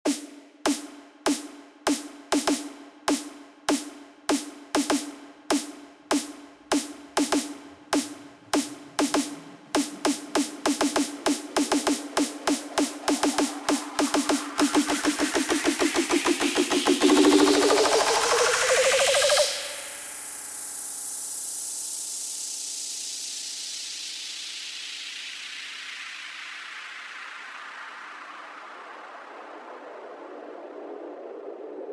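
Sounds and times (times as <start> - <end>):
snare roll: 0.0 - 19.7.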